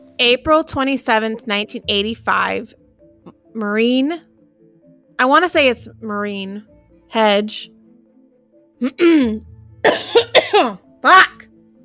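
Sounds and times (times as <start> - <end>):
speech: 0.2 - 2.8, 3.6 - 4.3, 5.2 - 7.8, 8.8 - 11.3
throat clearing and coughing from allergies: 8.8 - 10.8.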